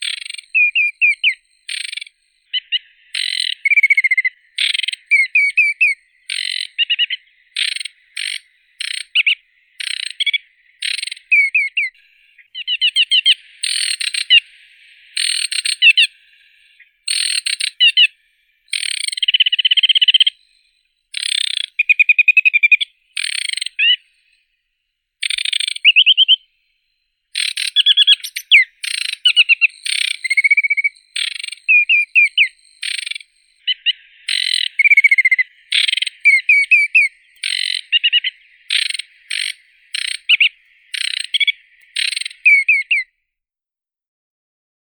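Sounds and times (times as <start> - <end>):
aquatic warbler Acrocephalus paludicola singing: 0.0 - 43.1.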